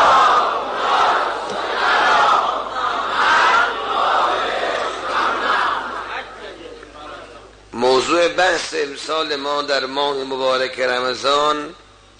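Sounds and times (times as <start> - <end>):
large crowd reciting salawat in unison at a Ramadan religious gathering: 0.0 - 7.5
speech: 8.3 - 11.8.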